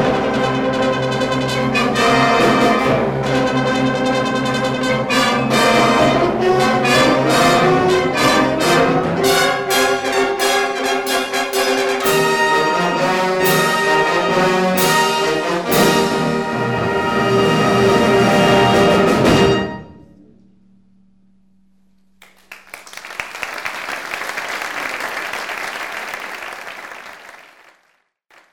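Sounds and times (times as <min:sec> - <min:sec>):
fanfare: 0:00.0 - 0:20.0.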